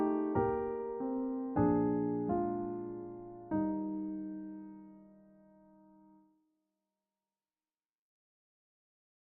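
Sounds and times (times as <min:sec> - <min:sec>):
goodnight song: 0:00.0 - 0:05.0.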